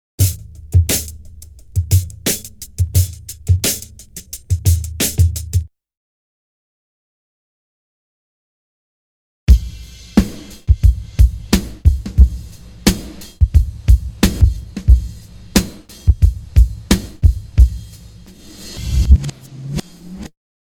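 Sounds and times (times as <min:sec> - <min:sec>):
drum loop: 0:00.2 - 0:05.7, 0:09.5 - 0:18.0.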